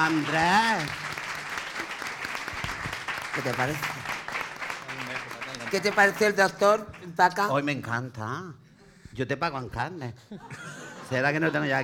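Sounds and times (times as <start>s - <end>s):
speech: 0.0s - 1.0s, 3.4s - 4.1s, 5.7s - 8.6s, 9.2s - 11.8s
audience applause: 0.0s - 7.2s
laughter: 10.2s - 11.8s.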